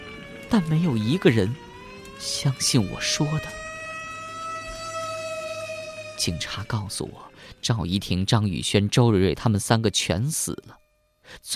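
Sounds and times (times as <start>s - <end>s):
fire engine siren wail: 0.0s - 11.5s
speech: 0.5s - 1.6s, 2.2s - 3.5s, 6.2s - 11.5s.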